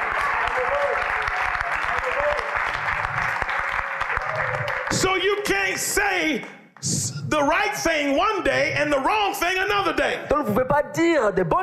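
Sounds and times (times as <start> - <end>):
audience applauding: 0.0 - 6.9
speech: 5.0 - 11.6.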